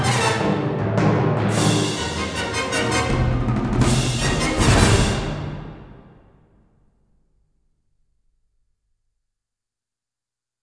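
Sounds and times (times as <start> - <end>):
credits music: 0.0 - 8.4.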